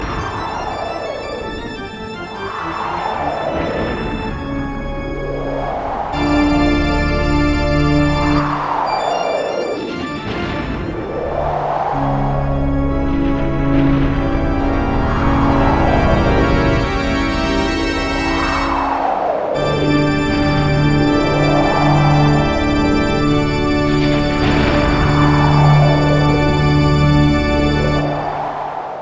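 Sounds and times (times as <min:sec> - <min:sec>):
castle music: 0:00.0 - 0:28.2.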